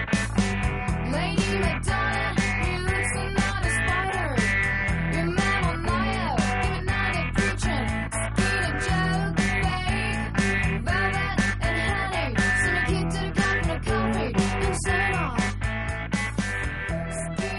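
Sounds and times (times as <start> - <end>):
recorded pop song with plucked intro, bass, drums and distorted guitars: 0.1 - 17.5.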